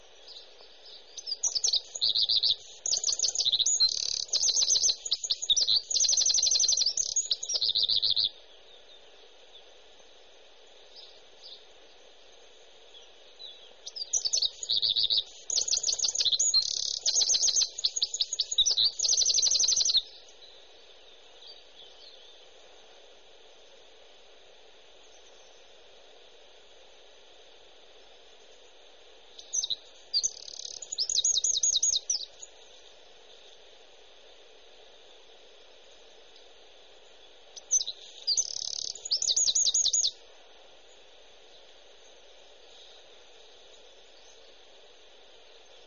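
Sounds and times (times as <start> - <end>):
wren of Portugal singing: 0.0 - 9.7, 10.9 - 22.5, 29.4 - 32.8, 37.0 - 40.2.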